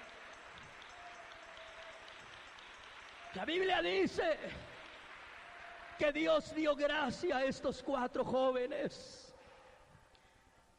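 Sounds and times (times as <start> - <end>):
audience applause: 0.0 - 6.8
speech: 3.3 - 4.7, 6.0 - 9.2.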